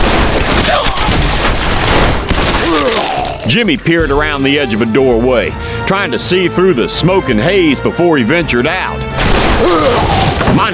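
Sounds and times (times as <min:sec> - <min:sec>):
gunfire: 0:00.0 - 0:03.4
speech: 0:03.5 - 0:10.7.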